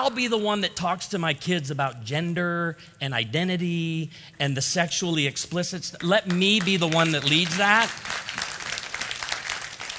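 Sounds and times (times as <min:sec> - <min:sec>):
speech: 0:00.0 - 0:08.3
crowd clapping: 0:06.0 - 0:09.9.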